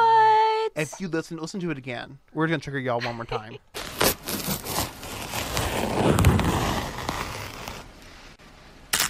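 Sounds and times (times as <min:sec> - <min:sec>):
speech: 0:00.8 - 0:04.0
banana being peeled: 0:03.8 - 0:08.0.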